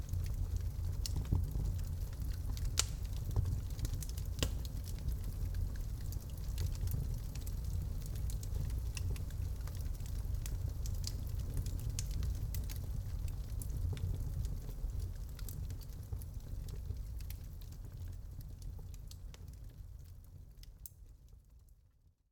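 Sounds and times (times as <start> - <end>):
fireplace fire: 0.0 - 22.2.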